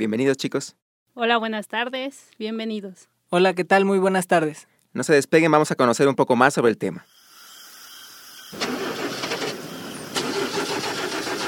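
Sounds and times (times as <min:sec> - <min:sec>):
speech: 0:00.0 - 0:07.2
car engine cranking with a grinding starter whir: 0:08.6 - 0:11.4.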